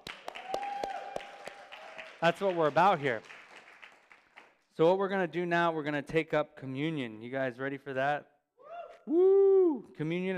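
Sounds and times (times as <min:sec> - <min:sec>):
scattered applause: 0:00.0 - 0:04.7
speech: 0:02.2 - 0:03.4, 0:04.8 - 0:08.3, 0:09.0 - 0:10.3.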